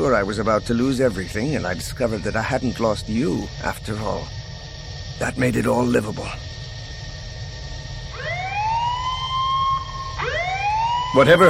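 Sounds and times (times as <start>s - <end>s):
speech: 0.0s - 4.4s, 5.2s - 6.5s, 11.1s - 11.4s
ship alarm blaring: 8.1s - 11.4s.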